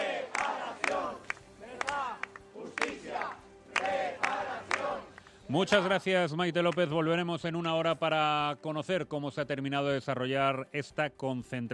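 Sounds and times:
many voices calling and chanting: 0:00.0 - 0:06.1
large crowd clapping at a memorial rally: 0:00.0 - 0:07.2
speech: 0:05.5 - 0:11.7.

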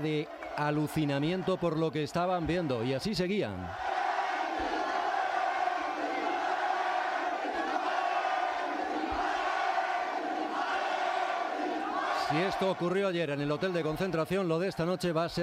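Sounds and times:
speech: 0:00.0 - 0:03.9, 0:12.3 - 0:15.4
football fans cheering and shouting: 0:00.0 - 0:15.4
football fans singing anthem: 0:03.8 - 0:13.1.

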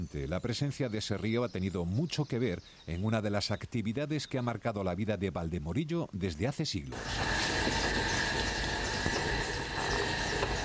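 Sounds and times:
speech: 0:00.0 - 0:08.0
potter's wheel spinning: 0:06.9 - 0:10.6.

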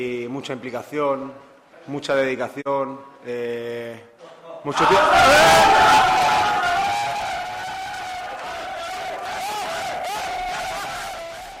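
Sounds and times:
speech: 0:00.0 - 0:06.4
football players whooping and cheering: 0:04.7 - 0:11.5.

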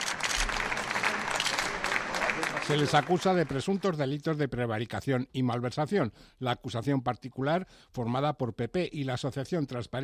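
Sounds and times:
party colleagues applauding arrival at a provincial court: 0:00.0 - 0:04.2
speech: 0:02.7 - 0:10.0.

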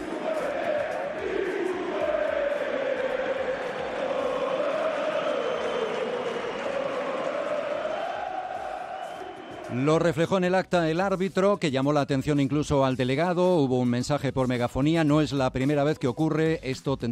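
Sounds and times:
football crowd chanting insults: 0:00.0 - 0:09.8
speech: 0:09.8 - 0:17.1.

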